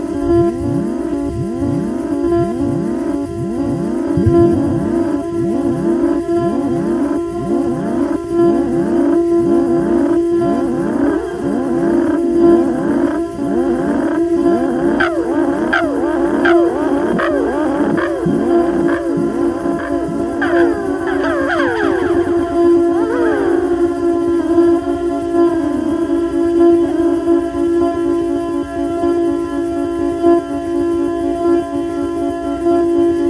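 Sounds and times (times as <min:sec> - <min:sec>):
theremin: 0:00.0 - 0:33.2.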